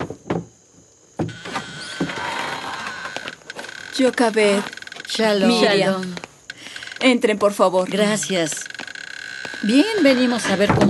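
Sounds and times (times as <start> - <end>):
house door opening: 1.2 - 5.3, 8.2 - 10.8
speech: 4.0 - 6.2, 7.0 - 8.7, 9.6 - 10.8.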